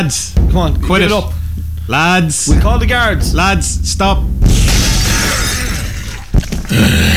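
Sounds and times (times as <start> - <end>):
speech: 0.0 - 4.6, 6.7 - 7.1
sharp loud impact: 0.4 - 6.3
window being slammed and shattering: 4.5 - 6.6.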